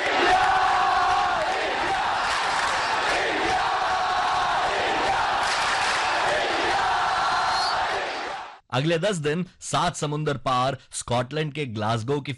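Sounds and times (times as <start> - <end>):
crowd chanting: 0.0 - 8.6
speech: 8.7 - 12.3.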